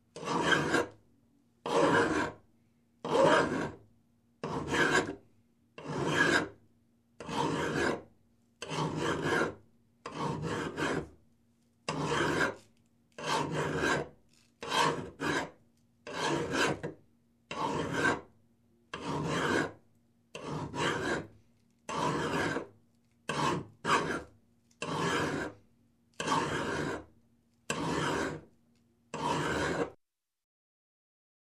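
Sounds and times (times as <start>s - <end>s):
hand saw cutting wood in single strokes: 0.2s - 0.9s, 1.6s - 2.4s, 3.0s - 3.8s, 4.4s - 5.2s, 5.8s - 6.5s, 7.2s - 8.0s, 8.6s - 11.1s, 11.9s - 12.6s, 13.2s - 16.9s, 17.5s - 18.3s, 18.9s - 19.8s, 20.4s - 21.3s, 21.9s - 22.7s, 23.3s - 25.6s, 26.2s - 27.0s, 27.7s - 28.4s, 29.1s - 30.0s.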